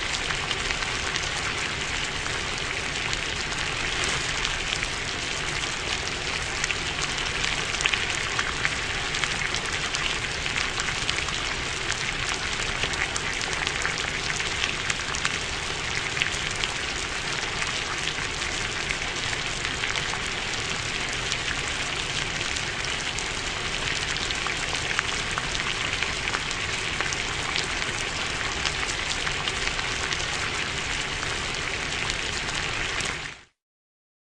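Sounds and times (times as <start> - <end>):
cooking crackle: 0.0 - 33.3.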